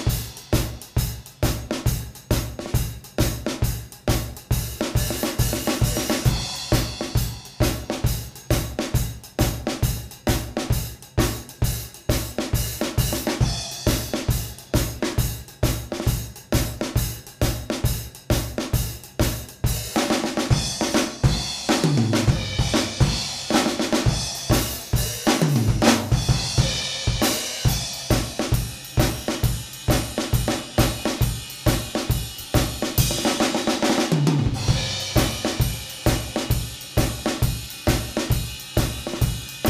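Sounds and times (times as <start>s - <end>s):
12/8 blues-style shuffle drum groove: 0.0s - 39.6s.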